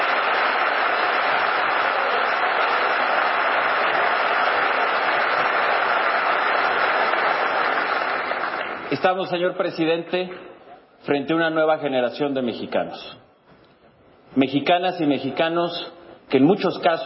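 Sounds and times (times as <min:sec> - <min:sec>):
audience applause: 0:00.0 - 0:09.0
speech: 0:08.9 - 0:13.2, 0:14.3 - 0:17.0.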